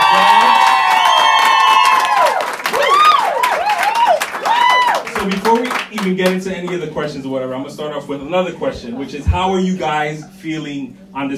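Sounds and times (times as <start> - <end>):
round of applause for Carlos and Miguel: 0.0 - 6.4
speech: 6.1 - 11.3.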